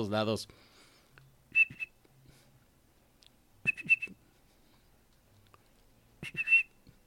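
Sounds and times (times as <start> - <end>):
faint hum: 0.0 - 7.0
person whistling an imitation of a bird's song: 1.5 - 2.0, 3.6 - 4.2, 6.2 - 6.8.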